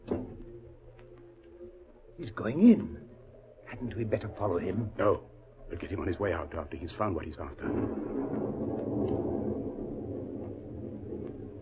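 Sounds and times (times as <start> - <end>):
speech: 2.2 - 3.0, 3.8 - 8.6
distant thunder rumbling: 5.8 - 11.5.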